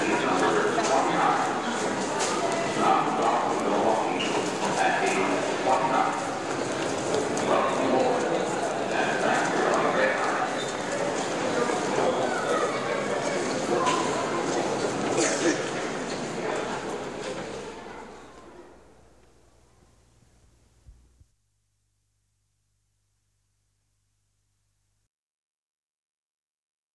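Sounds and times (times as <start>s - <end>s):
crowd at an airport train station: 0.0s - 20.6s.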